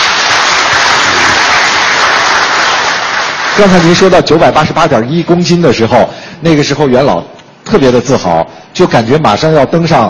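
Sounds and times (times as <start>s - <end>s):
applause: 0.0s - 4.2s
speech: 3.6s - 10.0s.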